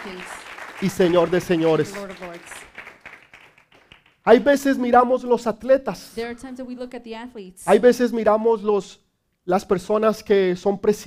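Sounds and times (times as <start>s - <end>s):
speech: 0.0s - 2.7s, 4.2s - 11.0s
audience applauding: 0.0s - 4.3s.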